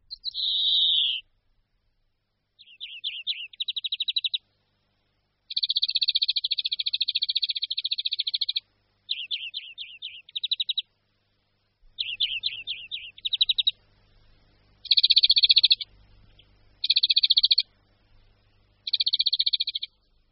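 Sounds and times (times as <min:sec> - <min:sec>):
European greenfinch singing: 0:00.0 - 0:01.3, 0:02.6 - 0:04.5, 0:05.5 - 0:10.9, 0:11.9 - 0:13.9, 0:14.8 - 0:20.2.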